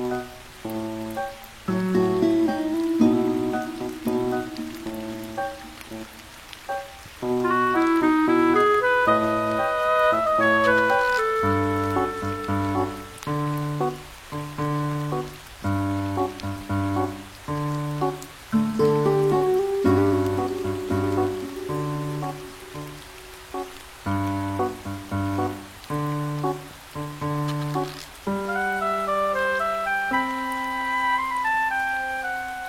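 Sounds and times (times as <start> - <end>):
music with low bass notes, chords and a higher melody: 0.0 - 32.6
soft constant patter of rain: 0.0 - 32.6.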